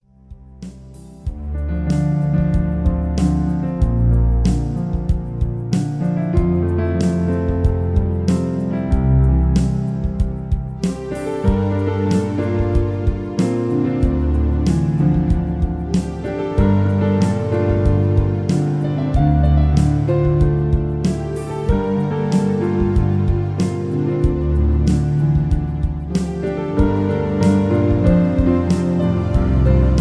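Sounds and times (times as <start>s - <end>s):
piano version: 0.0s - 29.9s.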